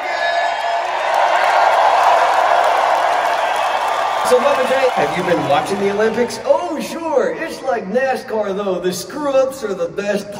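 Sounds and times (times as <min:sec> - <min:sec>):
large live audience cheering and applauding: 0:00.0 - 0:07.3
speech: 0:04.3 - 0:10.3.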